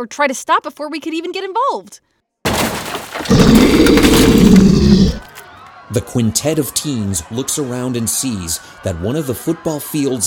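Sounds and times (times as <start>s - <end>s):
speech: 0.0s - 5.0s, 5.9s - 10.2s
loud creature roar: 3.1s - 5.3s.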